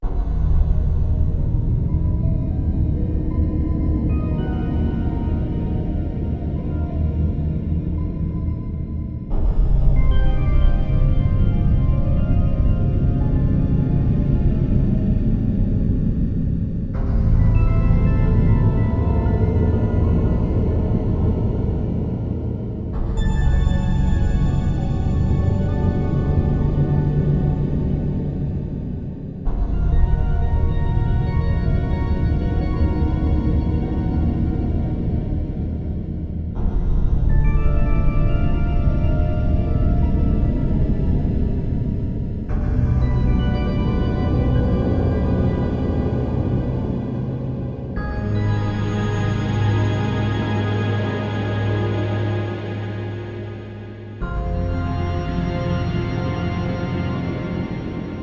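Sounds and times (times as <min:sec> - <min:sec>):
ambient atmosphere: 0:00.1 - 0:58.2.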